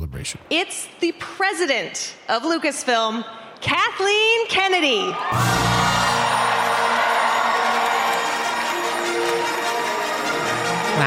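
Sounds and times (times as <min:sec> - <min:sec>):
speech: 0:00.2 - 0:05.9
large crowd whooping and cheering: 0:05.0 - 0:11.0
loud music: 0:05.3 - 0:11.0.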